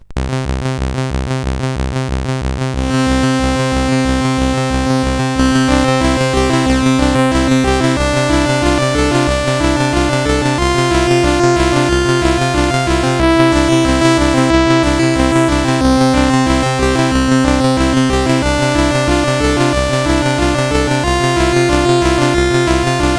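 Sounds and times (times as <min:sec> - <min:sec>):
SID chiptune music on a CSG8580R5 chip: 0:00.2 - 0:23.1.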